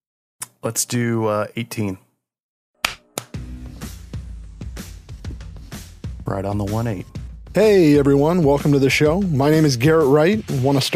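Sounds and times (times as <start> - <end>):
speech: 0.6 - 2.0, 6.3 - 10.9
hand clap for sync: 2.8 - 3.4.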